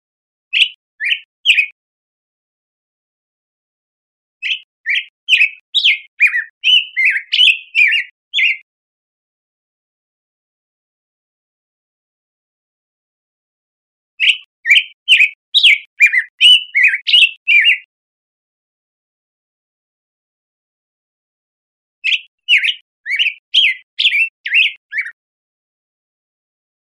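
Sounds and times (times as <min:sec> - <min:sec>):
black-headed grosbeak song: 0:00.5 - 0:01.8, 0:04.4 - 0:08.7, 0:14.2 - 0:17.9, 0:22.0 - 0:25.2.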